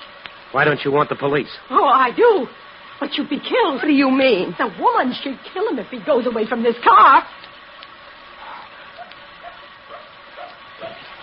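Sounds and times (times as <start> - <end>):
speech: 0.5 - 7.5
dog barking: 8.4 - 11.2.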